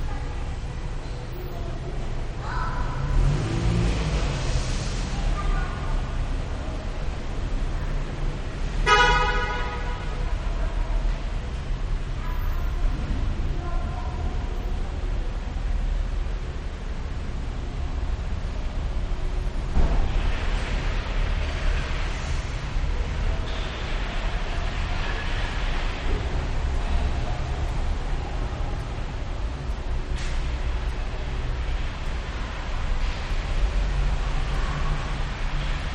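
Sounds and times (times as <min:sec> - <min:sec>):
busy traffic in a shopping center parking lot: 0:00.0 - 0:35.9.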